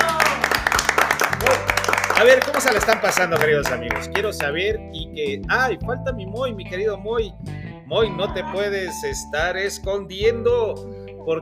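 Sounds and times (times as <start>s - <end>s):
audience clapping: 0.0s - 4.6s
speech: 2.2s - 11.4s.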